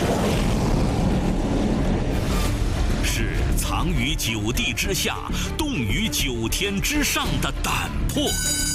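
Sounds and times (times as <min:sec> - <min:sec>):
J-45 fighter jet taking off: 0:00.0 - 0:03.6
speech: 0:03.8 - 0:08.6.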